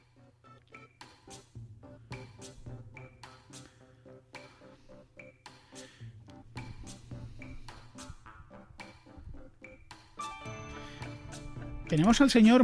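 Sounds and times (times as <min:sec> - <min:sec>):
Skype call tone: 0:08.5 - 0:12.0
speech: 0:11.9 - 0:12.6.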